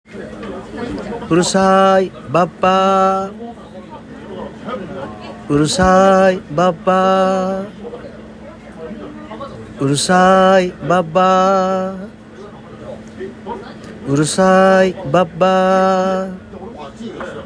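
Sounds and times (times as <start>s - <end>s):
guide vocal singing: 1.2s - 3.5s, 5.3s - 8.0s, 9.8s - 12.3s, 14.0s - 16.5s.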